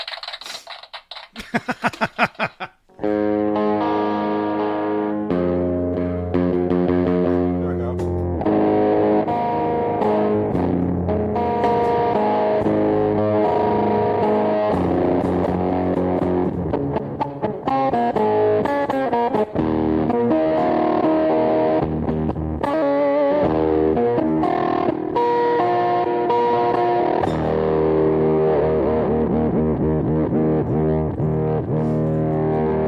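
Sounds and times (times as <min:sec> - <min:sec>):
laughter: 0:01.4 - 0:02.8
distorted electric guitar strums, chords and lead notes: 0:02.2 - 0:32.8.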